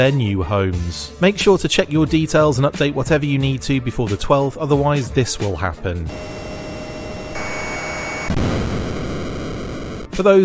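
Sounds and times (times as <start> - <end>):
speech: 0.0 - 6.4, 10.2 - 10.4
NES Top Gun video game jet landing on an aircraft carrier: 6.1 - 10.1.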